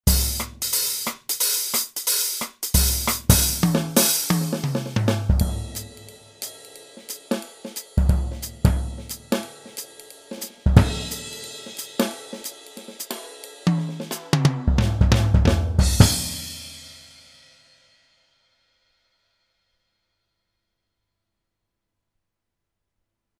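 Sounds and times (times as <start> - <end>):
jazz music: 0.0 - 16.7.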